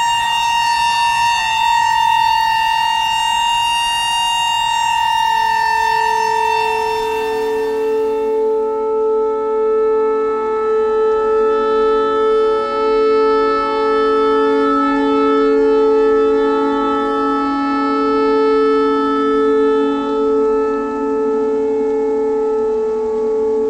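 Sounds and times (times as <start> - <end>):
clarinet notes: 0.0 - 18.9
noise: 0.0 - 23.6
tornado siren: 0.0 - 23.6.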